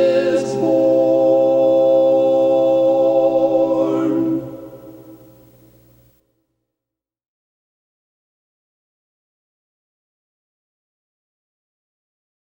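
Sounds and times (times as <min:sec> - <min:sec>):
tenor singing: 0:00.0 - 0:05.7.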